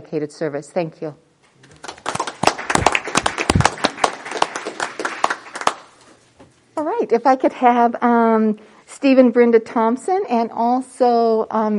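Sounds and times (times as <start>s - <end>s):
speech: 0.0s - 1.2s, 7.1s - 11.7s
audience applause: 1.6s - 6.1s.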